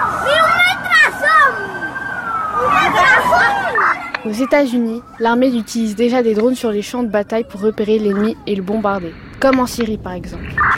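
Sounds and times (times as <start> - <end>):
voices shouting: 0.0 - 8.6
wailing sirens during drone attack at a military parade: 0.0 - 8.7
crowd noise: 0.0 - 9.2
speech: 4.2 - 10.7.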